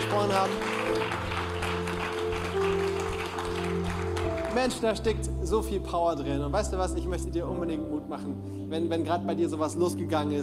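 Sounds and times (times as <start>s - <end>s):
audience clapping: 0.0s - 5.1s
sustained low musical tones: 0.0s - 10.4s
speech: 0.2s - 1.0s, 4.6s - 10.4s.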